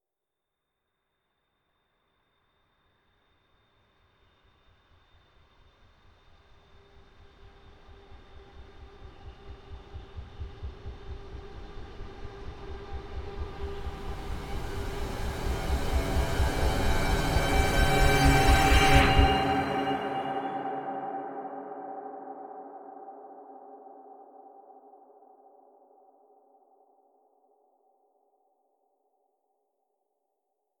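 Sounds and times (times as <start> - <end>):
horror music build-up: 7.0 - 22.4.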